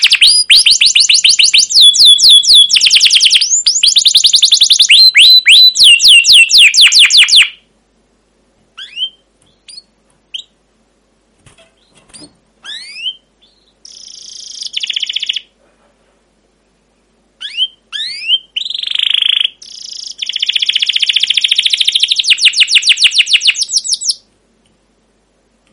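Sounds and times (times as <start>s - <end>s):
canary singing: 0.0s - 7.7s, 8.7s - 10.6s, 11.7s - 15.6s, 17.4s - 24.3s.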